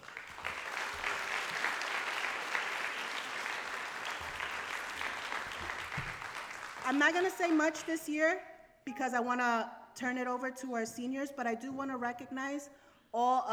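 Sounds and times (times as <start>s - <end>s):
round of applause: 0.0s - 7.2s
speech: 6.9s - 13.5s.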